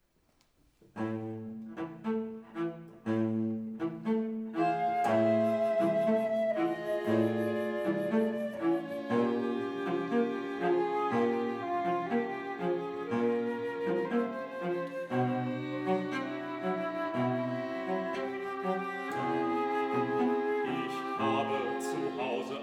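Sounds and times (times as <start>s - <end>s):
piano: 1.0s - 22.6s.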